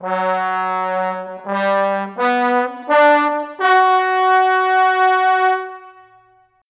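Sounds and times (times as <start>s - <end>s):
cinematic trombones: 0.0s - 6.6s.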